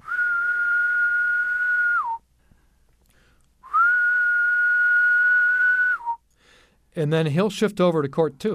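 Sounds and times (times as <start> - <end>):
person imitating a periodical cicada calling song: 0.0 - 2.2, 3.7 - 6.2
speech: 7.0 - 8.5.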